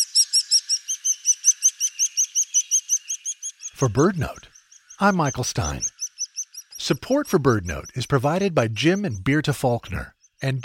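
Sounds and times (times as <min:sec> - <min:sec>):
begging chick calls: 0:03.7 - 0:09.8
speech: 0:03.8 - 0:05.9, 0:06.8 - 0:10.6.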